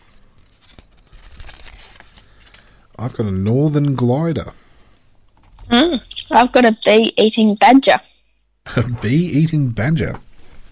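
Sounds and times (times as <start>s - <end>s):
crinkly plastic rustles: 0.0s - 2.8s
package being torn open: 0.0s - 2.8s
speech: 3.0s - 4.6s, 6.3s - 8.1s, 8.7s - 10.2s.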